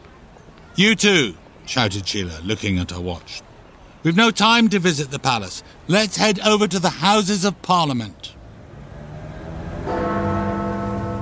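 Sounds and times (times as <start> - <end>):
speech: 0.8 - 8.3
clock tower bell striking the hour: 9.9 - 11.2.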